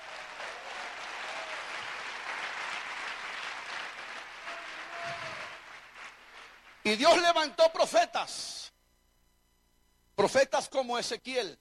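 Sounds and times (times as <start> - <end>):
audience applause: 0.0 - 7.0
speech: 6.9 - 8.7, 10.2 - 11.6.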